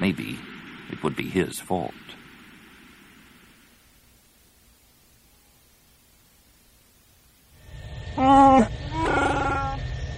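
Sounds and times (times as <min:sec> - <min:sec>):
speech: 0:00.0 - 0:00.4, 0:01.0 - 0:02.2
Wookiee groans echoing through the frigid hold of a ship: 0:08.1 - 0:09.8.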